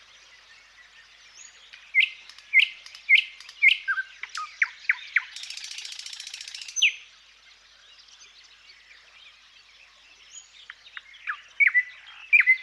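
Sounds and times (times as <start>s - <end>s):
Thrush nightingale song: 0.0s - 12.6s.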